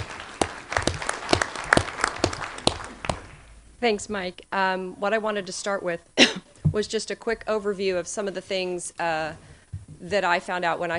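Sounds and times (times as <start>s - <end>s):
audience round of applause: 0.0s - 3.5s
speech: 3.8s - 10.9s.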